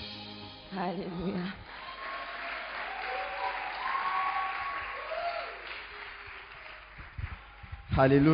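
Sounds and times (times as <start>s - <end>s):
speech: 0.8s - 1.6s, 8.0s - 8.3s
church congregation applauding: 1.7s - 8.3s.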